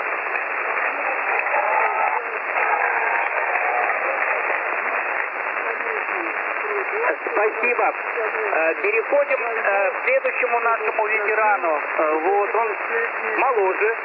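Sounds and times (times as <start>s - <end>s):
people clapping: 0.0s - 8.0s
speech: 7.8s - 14.0s.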